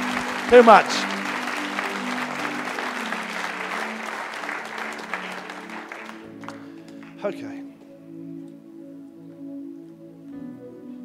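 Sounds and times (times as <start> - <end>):
audience applause: 0.0 - 7.4
speech: 0.5 - 1.1, 7.2 - 7.7.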